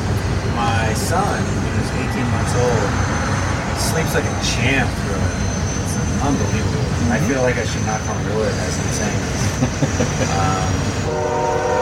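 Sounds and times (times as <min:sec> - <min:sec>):
steady rumble of a passing train: 0:00.0 - 0:11.8
speech: 0:01.1 - 0:03.2, 0:03.8 - 0:05.5, 0:06.2 - 0:11.8
laughter: 0:09.1 - 0:10.8
train horn: 0:11.0 - 0:11.8.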